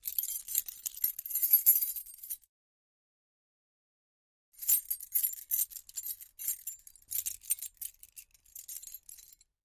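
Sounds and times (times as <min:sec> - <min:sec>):
keys shaking: 0:00.0 - 0:02.4, 0:04.6 - 0:09.5.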